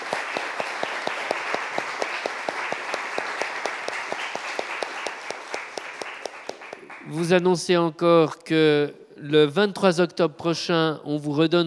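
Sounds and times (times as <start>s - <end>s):
audience applause: 0.0s - 7.3s
speech: 7.1s - 11.6s.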